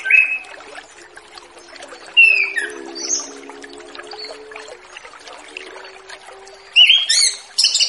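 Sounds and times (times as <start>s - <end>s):
orange-headed thrush singing: 0.0s - 7.7s.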